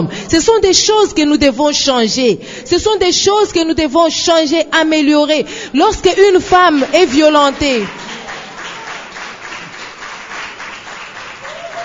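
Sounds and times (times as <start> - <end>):
speech: 0.1 - 8.0
audience applause: 6.8 - 11.8.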